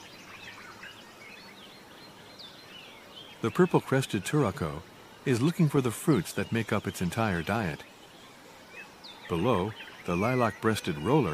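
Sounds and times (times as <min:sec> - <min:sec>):
white-eared barbets calling in the canopy: 0:00.0 - 0:11.3
speech: 0:03.4 - 0:07.9, 0:09.3 - 0:11.3.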